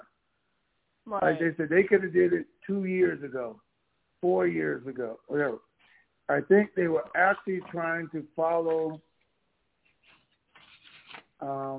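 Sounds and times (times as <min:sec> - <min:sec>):
speech: 0:01.1 - 0:05.7, 0:06.3 - 0:09.1, 0:11.4 - 0:11.7
paper rustling and sliding as it is moved around: 0:07.0 - 0:09.0, 0:09.8 - 0:11.4.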